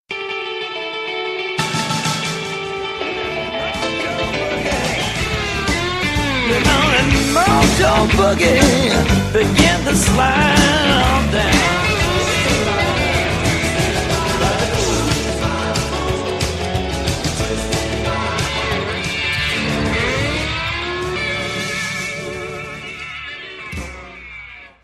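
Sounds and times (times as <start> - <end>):
guitar remix: 0.1 - 24.8.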